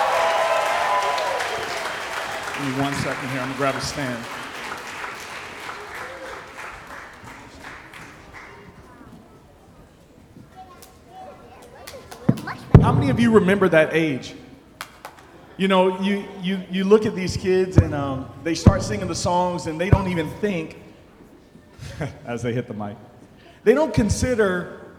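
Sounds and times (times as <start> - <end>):
audience applause: 0.0 - 9.0
speech: 2.6 - 4.4, 12.9 - 14.4, 15.6 - 20.8, 22.0 - 24.8.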